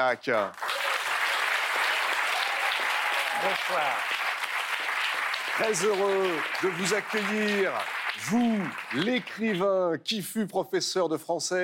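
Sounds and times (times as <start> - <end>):
speech: 0.0 - 0.7, 3.4 - 4.2, 5.6 - 11.6
sustained applause from a large audience: 0.4 - 9.7.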